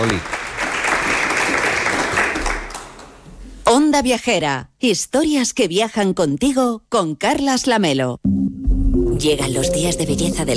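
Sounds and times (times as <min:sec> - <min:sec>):
speech: 0:00.0 - 0:00.4, 0:03.8 - 0:08.4, 0:09.2 - 0:10.5
live audience applause: 0:00.0 - 0:03.2.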